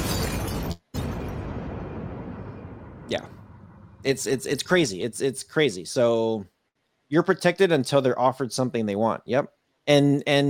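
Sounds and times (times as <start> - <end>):
crackling debris: 0.0 - 4.1
explosion sound effect: 0.0 - 4.5
speech: 3.1 - 3.4, 4.0 - 6.5, 7.1 - 10.4.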